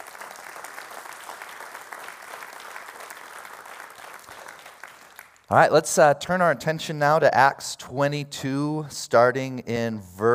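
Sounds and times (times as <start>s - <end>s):
audience clapping: 0.0s - 5.6s
speech: 5.5s - 10.3s.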